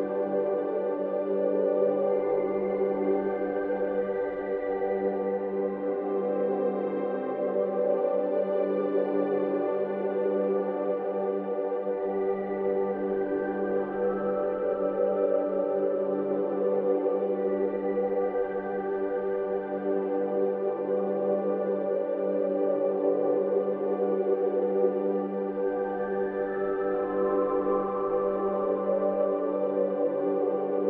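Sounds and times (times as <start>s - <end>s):
light warm atmospheric ambient soundscape blend: 0.0s - 30.8s.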